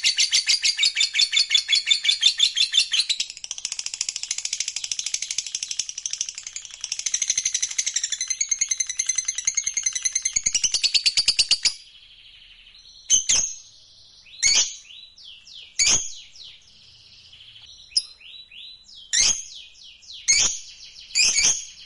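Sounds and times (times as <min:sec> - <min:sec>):
lovebird chattering song: 0:00.0 - 0:21.8.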